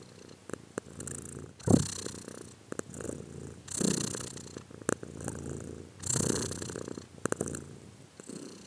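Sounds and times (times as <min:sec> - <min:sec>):
cat purring: 0:00.0 - 0:08.6.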